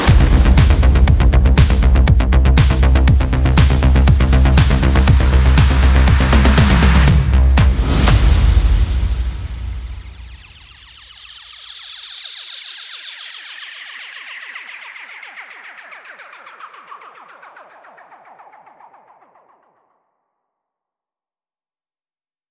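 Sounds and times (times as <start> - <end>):
bass: 0.0 - 11.0
sound effects: 0.0 - 19.4
percussion: 0.0 - 19.7.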